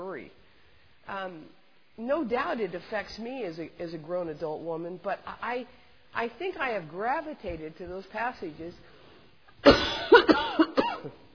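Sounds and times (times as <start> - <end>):
speech: 0.2 - 0.4, 1.1 - 9.0, 9.6 - 11.2
woman coughing: 9.6 - 11.2.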